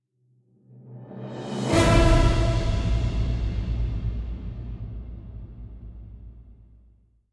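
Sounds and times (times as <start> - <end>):
battle music: 1.3 - 6.2.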